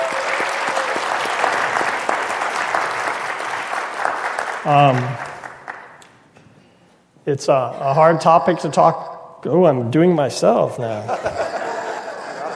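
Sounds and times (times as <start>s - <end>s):
round of applause for panelists: 0.0s - 6.0s
speech: 4.6s - 5.2s, 7.2s - 11.5s
laughter: 10.9s - 12.5s.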